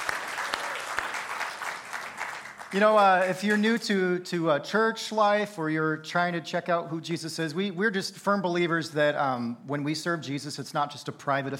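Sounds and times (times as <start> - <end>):
audience applause: 0.0 - 3.6
speech: 2.7 - 11.5.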